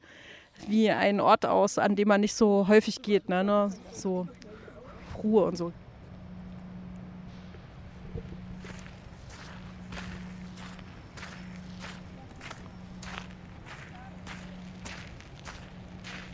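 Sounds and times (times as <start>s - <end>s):
speech: 0.7s - 4.4s, 5.2s - 5.8s
low constant hum: 1.2s - 16.3s
footsteps of people walking through a quiet industrial area: 4.0s - 16.3s.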